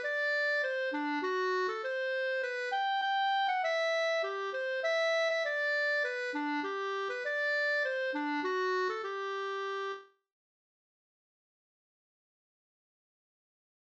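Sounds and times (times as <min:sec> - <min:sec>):
folk song melody: 0:00.0 - 0:10.1.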